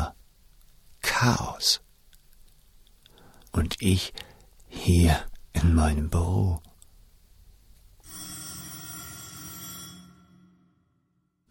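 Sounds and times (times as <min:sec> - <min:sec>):
low noise: 0:00.0 - 0:10.3
speech: 0:01.2 - 0:01.8, 0:03.6 - 0:06.7
telephone bell ringing: 0:08.0 - 0:11.2.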